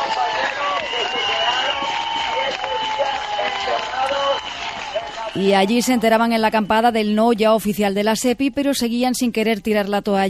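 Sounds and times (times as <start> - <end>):
shouting and overlapping voices: 0.0 - 6.4
crowd applause welcoming returning protesters: 0.0 - 7.1
speech: 5.4 - 10.2.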